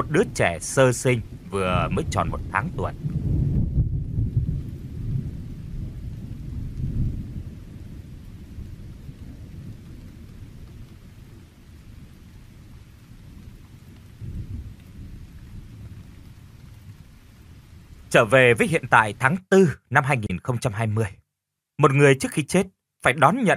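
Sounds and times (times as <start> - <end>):
speech: 0.0 - 3.2, 18.1 - 21.2, 21.8 - 23.5
thunder: 0.0 - 18.1
heavy rain: 0.0 - 21.0.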